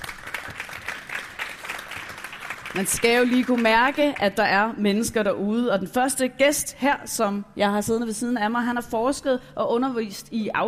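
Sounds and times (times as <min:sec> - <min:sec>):
audience applauding the panel at a live event: 0:00.0 - 0:04.3
speech: 0:02.7 - 0:10.6.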